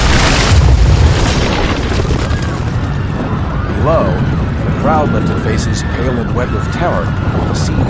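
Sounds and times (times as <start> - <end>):
crackling debris: 0.0 - 5.2
massive stone collapse rumble: 0.0 - 5.3
speech: 5.0 - 7.8.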